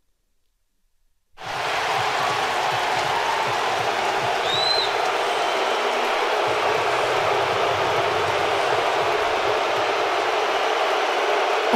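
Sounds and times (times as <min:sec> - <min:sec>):
stadium crowd booing: 0:01.4 - 0:11.7.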